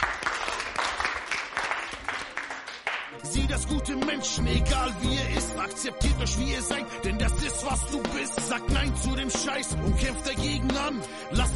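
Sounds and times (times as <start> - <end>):
applause: 0.0 - 3.2
speech: 3.2 - 11.5.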